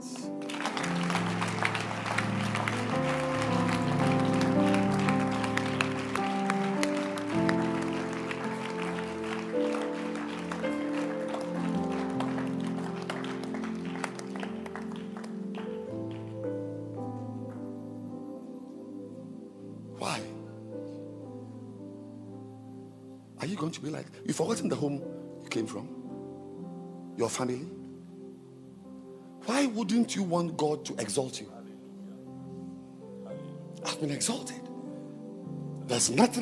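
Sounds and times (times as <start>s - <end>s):
sustained low musical tones: 0.0s - 36.4s
audience clapping: 0.2s - 17.0s
speech: 23.5s - 26.0s, 27.2s - 27.8s, 29.8s - 31.6s, 34.0s - 34.7s, 35.9s - 36.4s.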